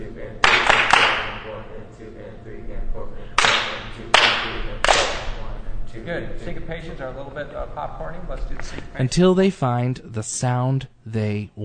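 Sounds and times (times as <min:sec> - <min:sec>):
hands clapping out a short rhythm: 0:00.4 - 0:01.5, 0:03.4 - 0:05.4
speech: 0:01.6 - 0:05.3, 0:05.9 - 0:11.6.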